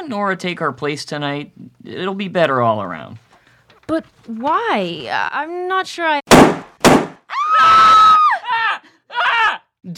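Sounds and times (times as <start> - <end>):
speech: 0.0 - 3.2, 3.9 - 6.3
gunshot fired through a door: 6.3 - 7.2
long high-pitched scream: 7.3 - 9.6
shorter frightened cries: 7.3 - 9.7.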